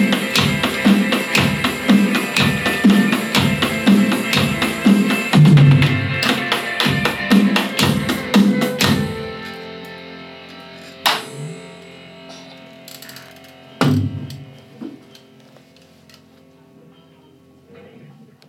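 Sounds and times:
live drums in four-four time: 0:00.0 - 0:09.6, 0:13.8 - 0:15.0.

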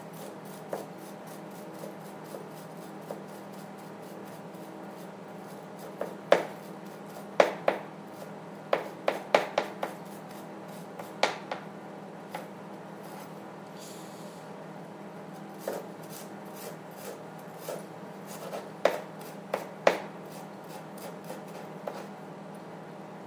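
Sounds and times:
knife chopping onion on a board: 0:00.1 - 0:11.7, 0:15.5 - 0:22.1.

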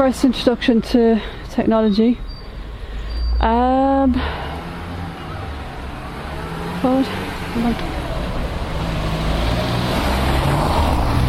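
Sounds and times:
speech: 0:00.0 - 0:02.3, 0:03.4 - 0:04.5, 0:06.8 - 0:08.0
car passing on the road: 0:02.2 - 0:11.2.

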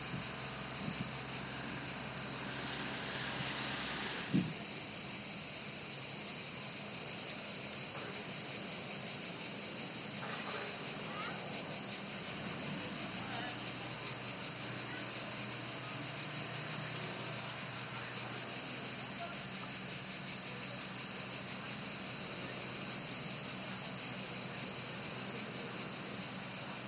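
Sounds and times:
cicadas: 0:00.0 - 0:26.8.

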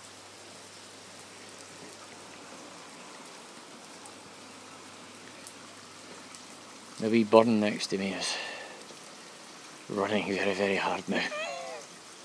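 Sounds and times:
rain dripping through trees: 0:00.0 - 0:12.2
speech: 0:07.0 - 0:08.5, 0:09.9 - 0:11.4.

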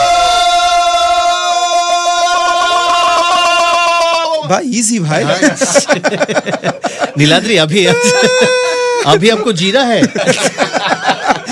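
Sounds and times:
group screaming together: 0:00.0 - 0:04.5, 0:07.8 - 0:09.2
speech: 0:04.5 - 0:11.1
laughter: 0:05.0 - 0:11.4.

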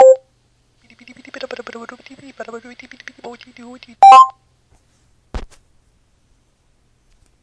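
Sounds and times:
sound effect from Google mobile app on iPad: 0:00.0 - 0:00.2, 0:04.0 - 0:04.3.

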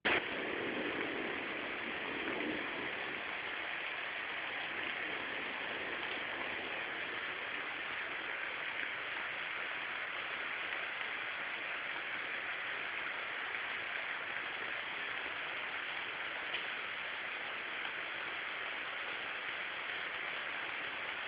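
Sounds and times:
rain: 0:00.0 - 0:21.2
thunder: 0:00.1 - 0:07.7.

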